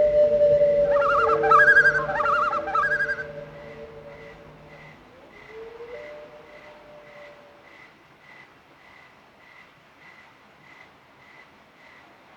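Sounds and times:
birds singing in the night: 0.0 - 5.0.

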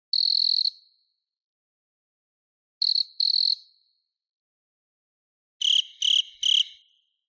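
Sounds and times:
cricket chirping: 0.1 - 0.8, 2.8 - 3.8, 5.6 - 7.2.

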